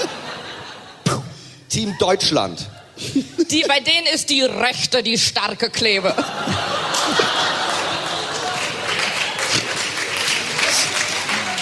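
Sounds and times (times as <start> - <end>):
laughter: 0.0 - 1.0, 6.0 - 11.6
speech: 1.7 - 7.2
crowd clapping: 6.9 - 11.6.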